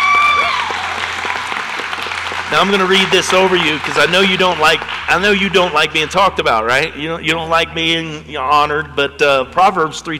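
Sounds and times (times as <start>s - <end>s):
crowd applauding: 0.0s - 8.0s
speech: 2.5s - 10.1s.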